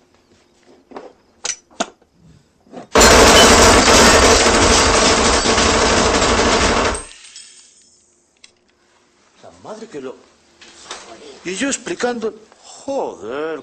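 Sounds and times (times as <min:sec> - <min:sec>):
micro Uzi submachine gun firing: 0:03.0 - 0:07.1
speech: 0:11.4 - 0:13.6.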